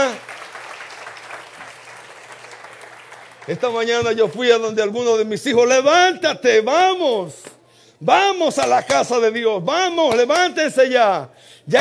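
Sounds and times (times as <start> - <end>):
audience applause: 0.0 - 3.9
speech: 3.4 - 11.8.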